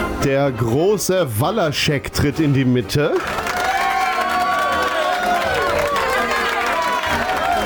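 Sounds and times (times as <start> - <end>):
speech: 0.2 - 3.5
audience applause and cheering: 3.1 - 7.6.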